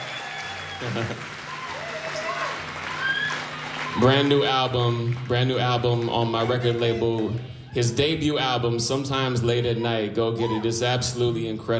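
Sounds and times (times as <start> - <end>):
cheers and whoops: 0.0 - 4.5, 6.4 - 7.8
audience clapping: 0.0 - 8.0
speech: 0.8 - 1.4, 4.0 - 11.7.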